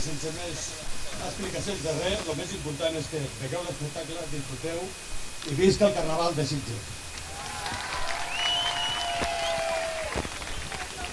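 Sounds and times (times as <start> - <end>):
speech: 0.0 - 7.1
audience applause: 7.2 - 11.1.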